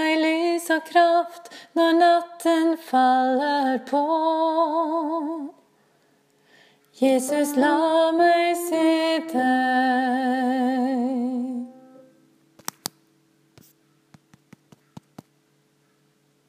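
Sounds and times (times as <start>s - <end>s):
soprano singing: 0.0s - 5.6s, 7.0s - 12.3s.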